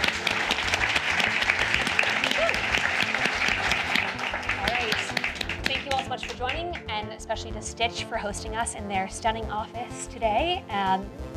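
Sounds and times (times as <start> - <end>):
audience applause: 0.0 - 6.6
speech: 7.4 - 11.3.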